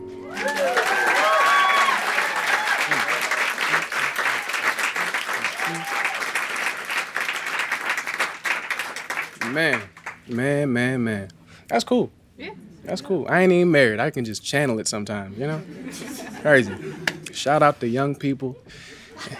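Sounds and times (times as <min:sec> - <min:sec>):
audience clapping: 0:00.0 - 0:10.4
laughter: 0:00.4 - 0:06.2, 0:15.2 - 0:17.4, 0:18.4 - 0:19.3
speech: 0:09.6 - 0:12.2, 0:12.8 - 0:19.3.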